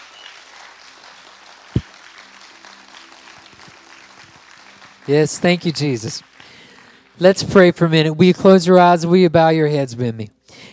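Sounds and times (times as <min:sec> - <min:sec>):
audience clapping: 0:00.0 - 0:07.9
speech: 0:05.1 - 0:06.3, 0:07.2 - 0:10.4.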